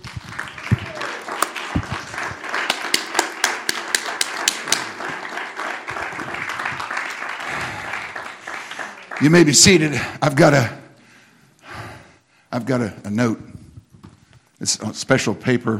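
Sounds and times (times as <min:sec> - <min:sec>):
audience clapping: 0:00.0 - 0:10.6
speech: 0:09.2 - 0:10.8, 0:12.6 - 0:13.6, 0:14.6 - 0:15.7.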